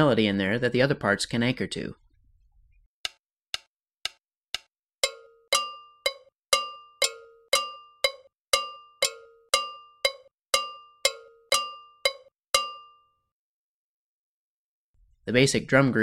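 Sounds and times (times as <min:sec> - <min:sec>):
speech: 0:00.0 - 0:02.0, 0:15.3 - 0:16.0
fuller lower ringing bell: 0:05.0 - 0:13.2.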